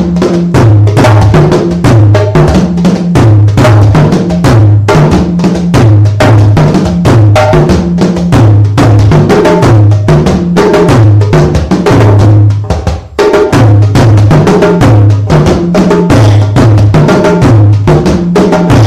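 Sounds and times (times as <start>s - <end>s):
rumba music: 0.0s - 18.8s.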